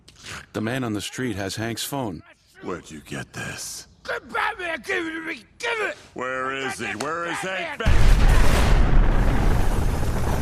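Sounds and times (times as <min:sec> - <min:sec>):
speech: 0:00.5 - 0:08.6
large explosion: 0:07.9 - 0:10.3.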